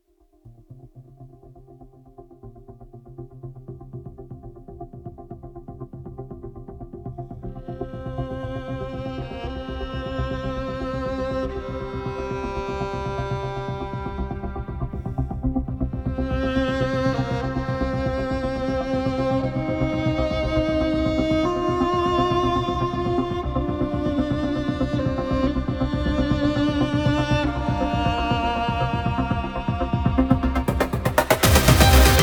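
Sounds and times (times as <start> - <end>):
music track: 8.3 - 32.2.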